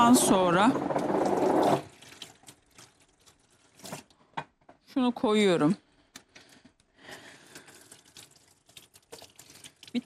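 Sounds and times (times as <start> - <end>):
water gushing from a kitchen tap for washing hands: 0.0 - 4.0, 7.4 - 10.0
speech: 0.1 - 1.0, 5.0 - 5.8.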